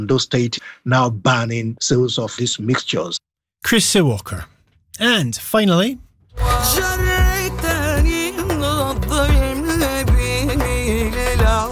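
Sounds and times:
speech: 0.0 - 6.9
full instrumental backing: 6.3 - 11.7
rhythmic percussion: 6.3 - 11.7
female Syrian singer singing in Damascus: 6.4 - 11.7.

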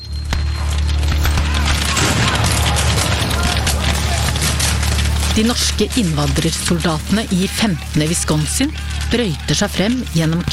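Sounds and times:
battlefield gunfire crackling: 0.2 - 10.5
cannon fire booms: 1.1 - 5.1
speech: 5.4 - 10.5.

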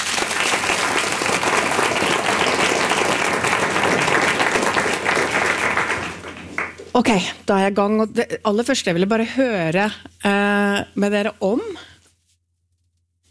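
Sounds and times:
audience applause: 0.0 - 6.9
speech: 7.0 - 11.8.

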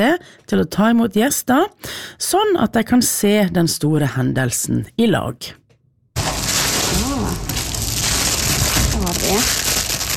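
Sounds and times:
speech: 0.0 - 5.6, 9.0 - 9.7
packaging crinkling as solar eclipse glasses are unpacked at Atlanterhavsparken: 6.2 - 10.1.

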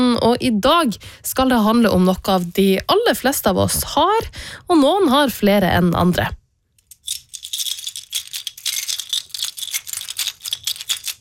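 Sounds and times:
speech: 0.2 - 6.4
bunch of many keys rattling: 6.8 - 11.1.

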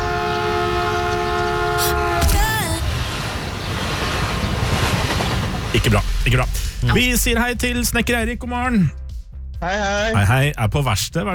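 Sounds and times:
multi-tone train horn: 0.0 - 2.4
train rolling on rails arriving at a station platform: 0.0 - 6.8
speech: 5.9 - 9.0, 9.6 - 11.3.

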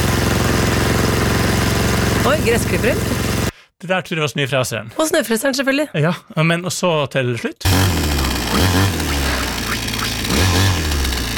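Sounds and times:
chainsaw: 0.0 - 3.5, 7.6 - 11.3
speech: 2.3 - 3.2, 3.8 - 9.0.

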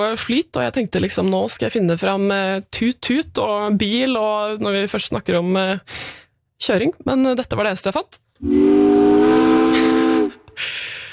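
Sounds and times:
speech: 0.0 - 9.3
steamship steam whistle: 8.4 - 10.6.

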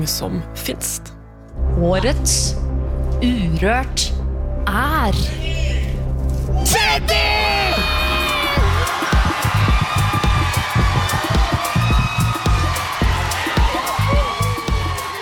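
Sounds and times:
speech: 0.0 - 5.7, 6.6 - 7.6
audience cheering and whooping at award announcement: 7.4 - 15.2.

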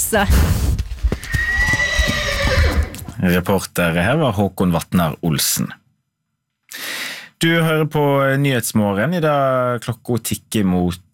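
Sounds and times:
speech: 0.1 - 0.7, 3.2 - 5.8, 7.4 - 11.1
soft hoof clops: 0.8 - 3.2
fjord horse neighing: 1.1 - 3.2.

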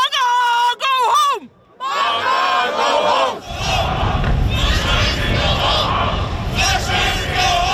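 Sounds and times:
crowd of demonstrators in Trondheim shouting and chanting in protest: 0.0 - 7.7
loud single voices: 0.0 - 7.7.

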